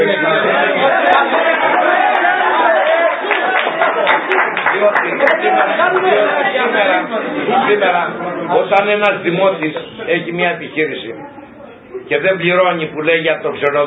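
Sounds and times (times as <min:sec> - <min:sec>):
audience clapping: 0:00.8 - 0:06.7
speech: 0:06.7 - 0:11.4, 0:12.1 - 0:13.8.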